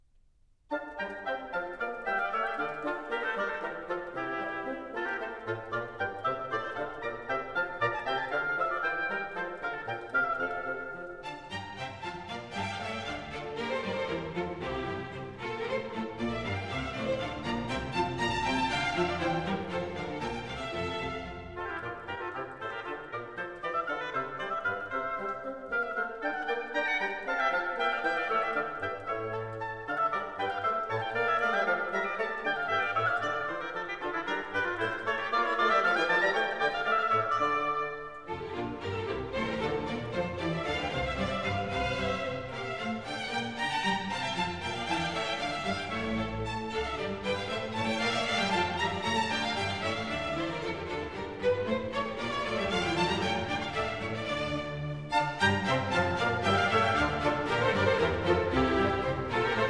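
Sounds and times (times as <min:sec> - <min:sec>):
baroque dance piece: 0:00.0 - 0:59.6.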